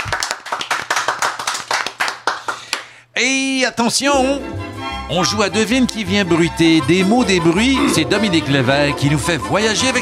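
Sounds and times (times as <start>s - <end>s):
studio audience rhythmic clapping: 0.0s - 3.0s
speech: 3.2s - 9.9s.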